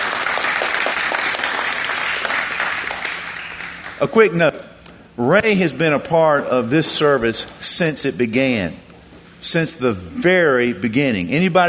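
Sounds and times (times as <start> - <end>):
audience applause for a speaker: 0.0 - 4.0
speech: 4.0 - 8.9, 9.5 - 11.6.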